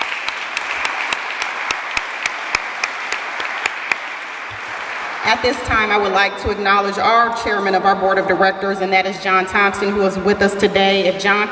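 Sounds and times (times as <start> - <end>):
audience applause: 0.0 - 5.8
speech: 5.3 - 11.4.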